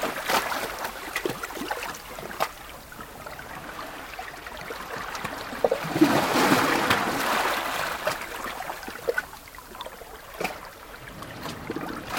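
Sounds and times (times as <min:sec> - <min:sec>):
ocean waves on a shoreline at a port: 0:00.0 - 0:12.1.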